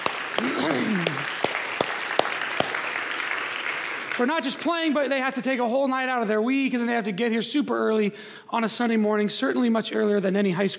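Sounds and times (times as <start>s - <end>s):
audience round of applause: 0.0s - 4.5s
speech: 4.2s - 10.7s.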